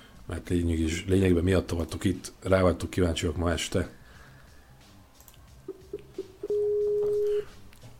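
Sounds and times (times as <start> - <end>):
speech: 0.3 - 4.0
Skype call dialing beeps: 5.7 - 7.5.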